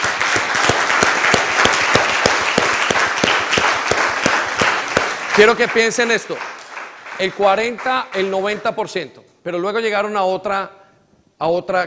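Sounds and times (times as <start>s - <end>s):
audience applause: 0.0s - 8.6s
speech: 5.4s - 6.5s, 7.2s - 10.8s, 11.4s - 11.8s.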